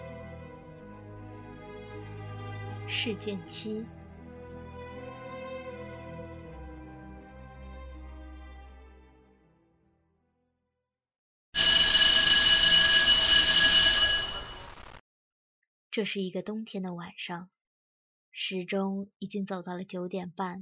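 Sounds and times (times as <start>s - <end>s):
speech: 2.9s - 4.0s, 16.0s - 17.6s, 18.4s - 20.6s
bell ringing at the end of evening study: 11.6s - 14.9s.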